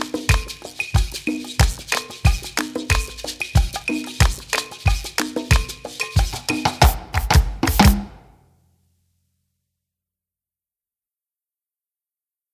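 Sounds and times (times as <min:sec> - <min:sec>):
island beat instrumental: 0:00.0 - 0:08.4.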